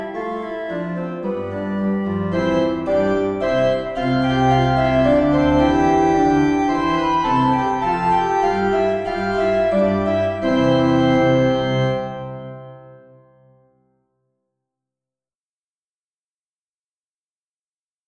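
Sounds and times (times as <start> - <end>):
organ playing an air and gavotte in C major: 0.0 - 13.5.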